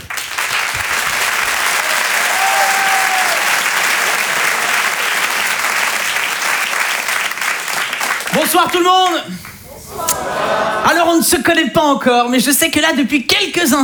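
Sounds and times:
large crowd applause: 0:00.0 - 0:10.9
laughter: 0:01.8 - 0:04.9, 0:11.7 - 0:13.8
speech: 0:08.5 - 0:09.4, 0:10.9 - 0:13.8.

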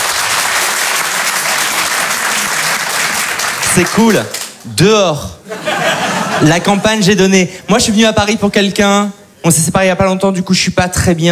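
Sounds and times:
audience applause: 0:00.0 - 0:04.7
speech: 0:03.8 - 0:11.3
laughter: 0:05.4 - 0:07.8.

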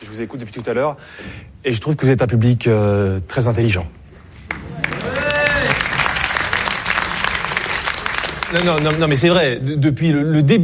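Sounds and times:
speech: 0:00.1 - 0:04.0, 0:08.5 - 0:10.6
audience applause: 0:04.5 - 0:09.5.

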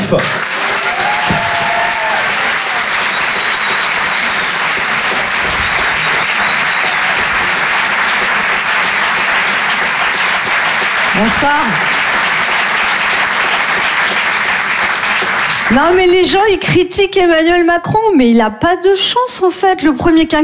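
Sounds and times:
comedy club audience applause: 0:00.0 - 0:16.2
speech: 0:00.1 - 0:00.5, 0:11.2 - 0:11.9, 0:15.7 - 0:20.4
whistle or whoop: 0:00.8 - 0:04.6, 0:05.4 - 0:07.5.

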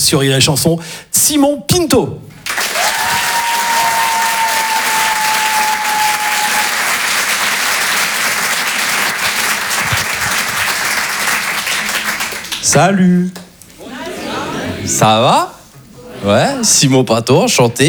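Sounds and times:
speech: 0:00.0 - 0:02.9, 0:12.7 - 0:13.4, 0:14.9 - 0:15.5, 0:16.2 - 0:17.8
audience applause and cheers for a comedian walking on stage: 0:02.4 - 0:12.6.

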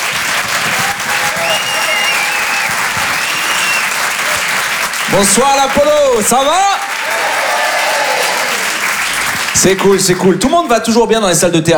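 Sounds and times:
audience whistles and cheers: 0:00.0 - 0:05.9, 0:07.0 - 0:08.9
theatre audience applause for a performer: 0:00.0 - 0:10.8
speech: 0:05.1 - 0:06.9, 0:09.6 - 0:11.7.

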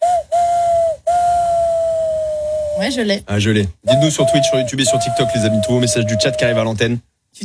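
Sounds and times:
voice imitating a train whistle using fingers and mouth: 0:00.0 - 0:03.0, 0:03.9 - 0:06.8
speech: 0:02.8 - 0:07.4.

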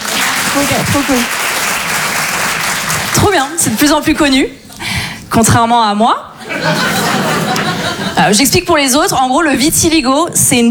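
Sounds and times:
comedy show audience applause: 0:00.0 - 0:03.6
speech: 0:00.6 - 0:01.4, 0:03.2 - 0:04.6, 0:05.3 - 0:07.4, 0:08.2 - 0:10.6
laughter: 0:06.4 - 0:08.3.

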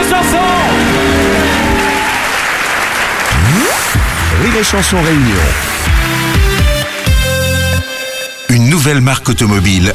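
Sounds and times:
applause: 0:00.0 - 0:07.2
speech: 0:04.6 - 0:05.7, 0:08.5 - 0:09.9.

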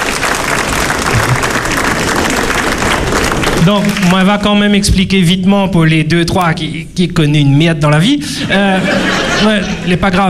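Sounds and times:
audience applause: 0:00.0 - 0:04.3
laughter: 0:01.1 - 0:01.6, 0:08.4 - 0:10.2
speech: 0:03.6 - 0:10.2.

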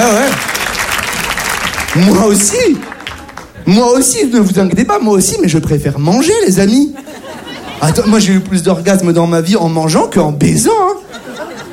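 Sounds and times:
audience clapping at a live comedy set: 0:00.0 - 0:04.0
speech: 0:02.0 - 0:02.9, 0:03.7 - 0:07.1, 0:07.8 - 0:11.4
laughter: 0:06.5 - 0:08.6, 0:10.7 - 0:11.7.

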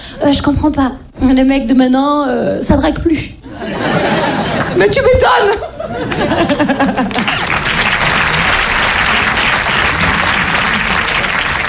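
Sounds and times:
speech: 0:00.2 - 0:04.2, 0:04.8 - 0:07.4
laughter: 0:03.5 - 0:11.6
audience applause: 0:06.0 - 0:11.6.

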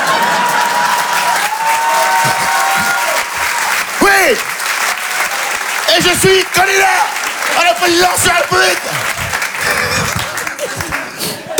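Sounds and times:
laughter: 0:00.0 - 0:04.6, 0:05.9 - 0:11.5
audience applause: 0:00.0 - 0:11.5
speech: 0:06.0 - 0:09.2.

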